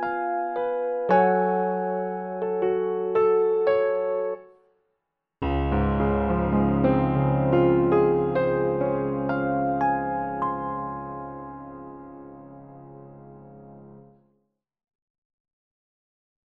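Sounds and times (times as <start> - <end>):
grand piano: 0.0 - 4.4, 5.4 - 14.2.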